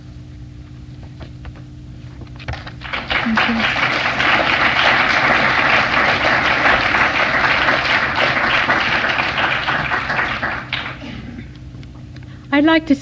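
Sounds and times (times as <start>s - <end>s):
audience applause: 2.6s - 11.2s
speech: 12.7s - 13.0s.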